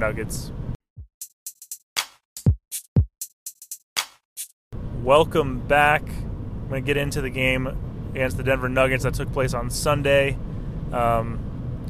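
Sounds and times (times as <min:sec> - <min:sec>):
speech: 0:00.0 - 0:00.6, 0:05.0 - 0:11.5
car driving in strong wind: 0:04.8 - 0:11.8.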